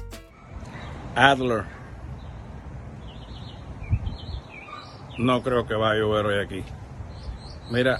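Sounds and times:
small birds singing: 0.3 - 7.9
speech: 1.2 - 1.8, 5.2 - 6.8, 7.7 - 7.9.

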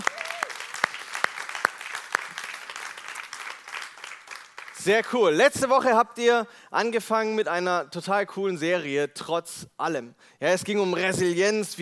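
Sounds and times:
audience applause: 0.0 - 4.8
speech: 4.8 - 11.8.

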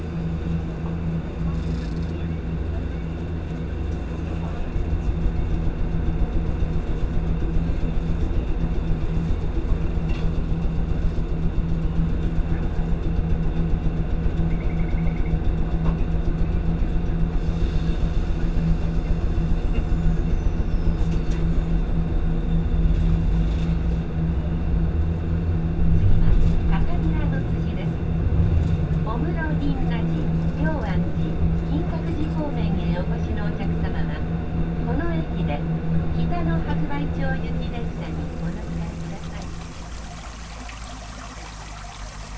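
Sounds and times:
low engine-like rumble: 0.0 - 42.3.

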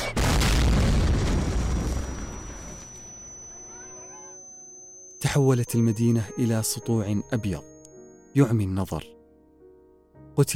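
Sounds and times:
nuclear bomb explosion over Hiroshima: 0.0 - 3.0
speech: 5.2 - 7.7, 8.4 - 9.2, 10.4 - 10.5.

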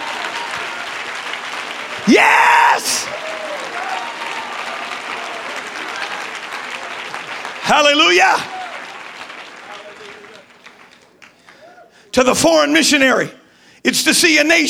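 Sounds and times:
large group clapping hands: 0.0 - 12.2
person shouting exuberantly: 2.0 - 3.2
speech: 2.1 - 3.3, 7.7 - 8.5, 12.2 - 14.6.

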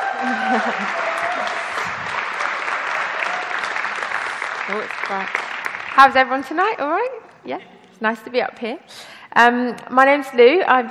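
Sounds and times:
laughter: 0.0 - 2.8
audience applause: 0.0 - 6.6
speech: 0.2 - 1.2, 4.7 - 10.9.

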